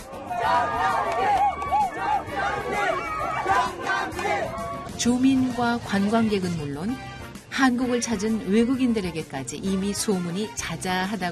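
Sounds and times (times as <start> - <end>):
crowd cheering at a water festival: 0.0 - 5.2
speech: 5.0 - 11.3.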